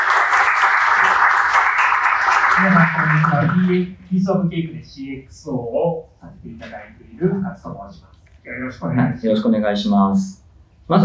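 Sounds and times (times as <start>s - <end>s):
audience applause: 0.0s - 3.9s
speech: 2.6s - 11.0s.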